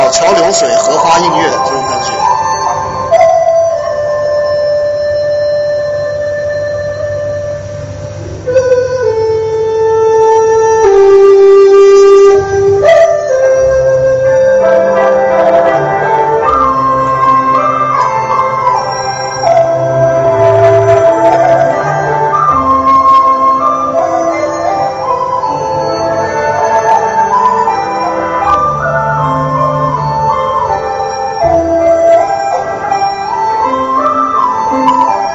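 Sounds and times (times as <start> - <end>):
Chinese bamboo flute melody: 0.0 - 35.3
soft low accompaniment: 0.0 - 35.3
speech: 0.5 - 1.8.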